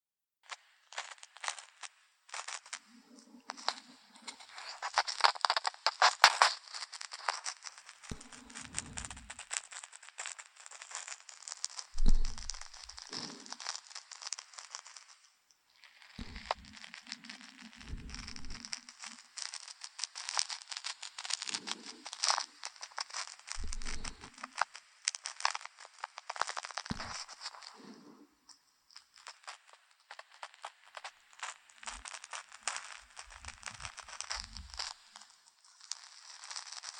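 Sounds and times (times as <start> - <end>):
ear-cleaning ASMR crinkling and scratching: 0.5 - 36.9
low rubbing thumps: 8.1 - 9.4, 12.0 - 13.4, 17.9 - 18.6, 23.6 - 24.3.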